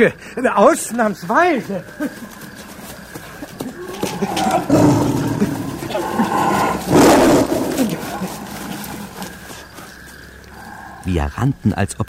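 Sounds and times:
speech: 0.0 - 2.4, 4.2 - 6.1, 11.1 - 12.0
tiger growling: 2.2 - 11.1
tiger roaring: 3.7 - 9.6
tiger snarling with low rumbles: 3.8 - 9.6.

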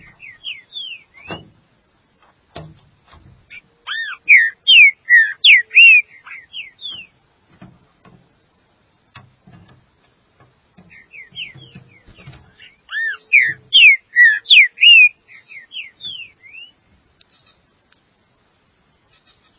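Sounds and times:
green-winged saltator whistled song: 0.0 - 1.6, 3.5 - 7.2, 10.9 - 16.8.

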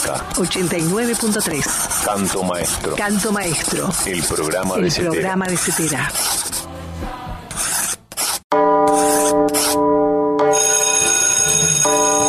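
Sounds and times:
speech: 0.1 - 7.1
bell ringing with a metallic buzzing clang: 8.5 - 12.2.

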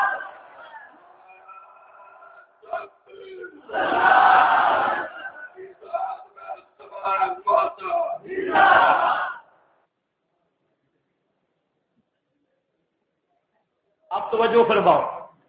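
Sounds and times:
crowd shouting slogans at a religious debate gathering: 0.0 - 9.5
speech: 14.5 - 15.2.

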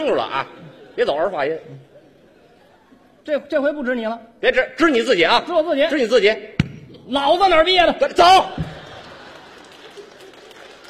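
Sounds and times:
speech: 0.0 - 1.9, 3.2 - 8.7
laughter: 0.2 - 3.2, 8.5 - 10.8
audience applause at a Beijing stage comedy show: 8.6 - 10.8.

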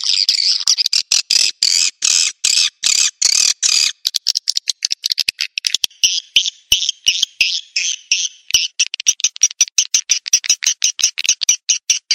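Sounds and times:
bird giving rapid dry ticking clicks: 0.0 - 12.1.

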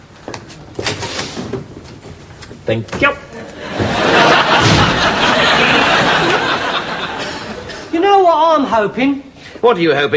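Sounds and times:
speech: 2.7 - 3.3, 8.6 - 10.1
laughter: 3.4 - 7.9
door slamming shut: 3.8 - 5.2.

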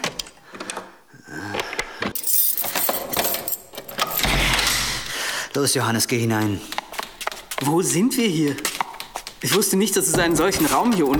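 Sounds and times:
key ring jangling as a monastery cellar door is unlocked: 2.1 - 5.1, 8.5 - 11.1
speech: 5.6 - 6.8, 7.6 - 8.8, 9.4 - 11.1.

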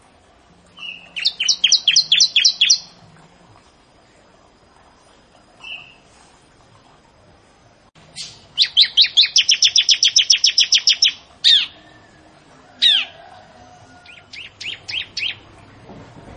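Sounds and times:
bar-winged prinia song: 0.1 - 3.2, 8.0 - 15.9.

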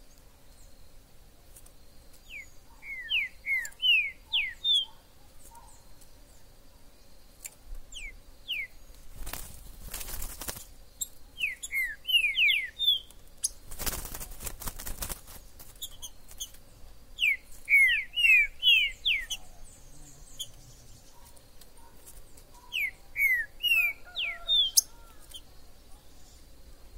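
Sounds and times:
green-winged saltator song: 2.3 - 5.0, 8.0 - 8.7, 11.4 - 13.1, 17.2 - 19.5, 22.7 - 24.9.

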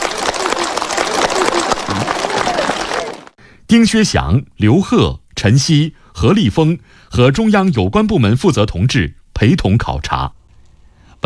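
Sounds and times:
prolonged applause in a public square: 0.0 - 3.4
speech: 3.7 - 10.4.

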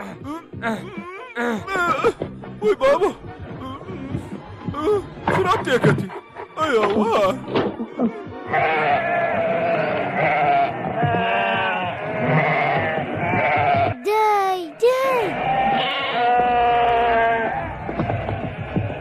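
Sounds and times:
speech: 0.6 - 3.3, 4.8 - 8.9
sheep bleating in an animated Kurdish-dubbed cartoon: 8.5 - 14.0, 15.2 - 18.9.

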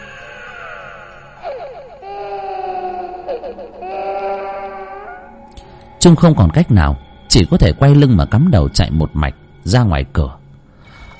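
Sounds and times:
shrill eerie cry: 0.0 - 5.5
speech: 6.0 - 10.4.

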